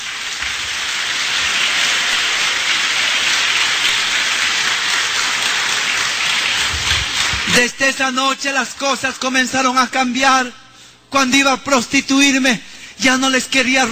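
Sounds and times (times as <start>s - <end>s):
audience applauding: 0.0s - 8.0s
speech: 7.6s - 13.9s.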